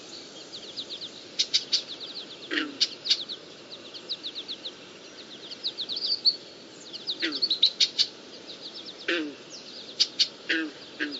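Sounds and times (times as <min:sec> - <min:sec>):
blackbirds chirping over a marsh: 0:00.0 - 0:11.1
frogs in the marsh: 0:01.2 - 0:03.5, 0:07.0 - 0:08.3, 0:09.0 - 0:11.1.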